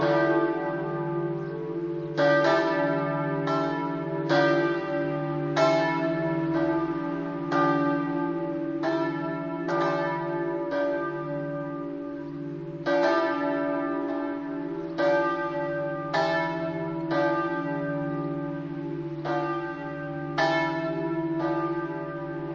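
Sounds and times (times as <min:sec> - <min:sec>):
bells ringing: 0:00.0 - 0:22.5.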